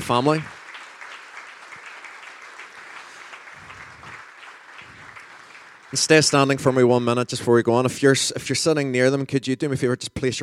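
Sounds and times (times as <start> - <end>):
audience round of applause: 0.0 - 6.9
speech: 0.1 - 0.6, 5.9 - 10.4.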